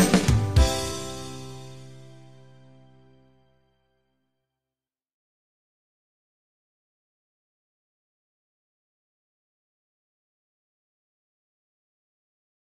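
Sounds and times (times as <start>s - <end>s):
beat music: 0.0s - 2.9s.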